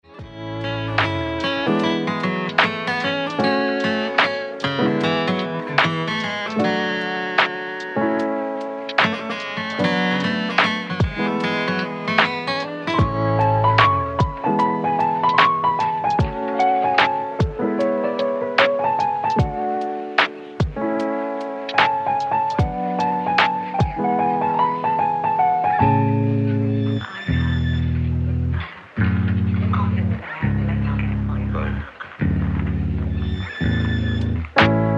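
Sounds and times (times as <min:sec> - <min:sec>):
canon in A major: 0:00.0 - 0:34.9.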